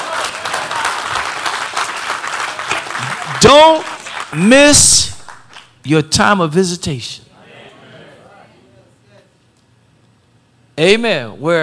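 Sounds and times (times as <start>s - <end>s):
audience applauding: 0.0s - 4.5s, 5.1s - 5.7s
speech: 3.5s - 5.2s, 5.8s - 7.2s, 10.8s - 11.6s.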